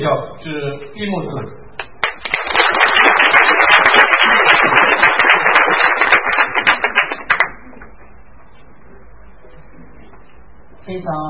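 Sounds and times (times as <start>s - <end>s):
speech: 0.0s - 1.6s, 10.9s - 11.2s
crowd applause: 2.0s - 7.9s.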